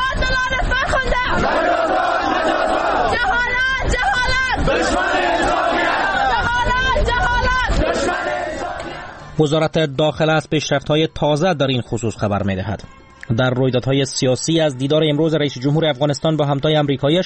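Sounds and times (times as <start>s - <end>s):
crowd of thousands protesting outside Afghanistan's Supreme Court chanting: 1.0s - 9.3s
speech: 9.4s - 17.2s.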